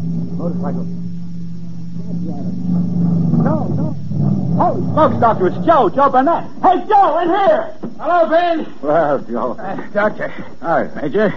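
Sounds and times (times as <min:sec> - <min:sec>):
motorcycle engine: 0:00.0 - 0:06.0
indistinct voices murmuring: 0:00.0 - 0:07.8
speech: 0:00.4 - 0:01.1, 0:02.0 - 0:11.3.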